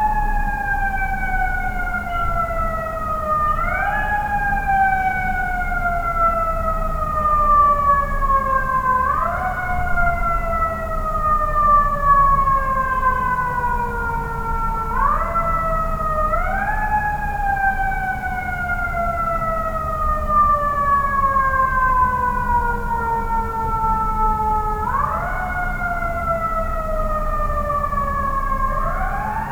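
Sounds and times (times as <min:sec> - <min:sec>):
siren at night: 0:00.0 - 0:29.5.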